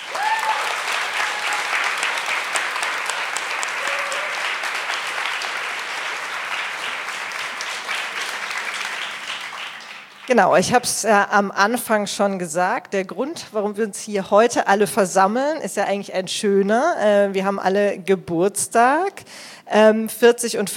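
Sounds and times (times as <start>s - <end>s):
audience applause for a panel: 0.0s - 10.4s
speech: 10.3s - 20.7s.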